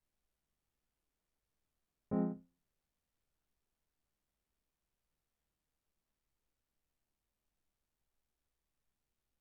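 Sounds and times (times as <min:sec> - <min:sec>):
keyboard playing: 0:02.1 - 0:02.4.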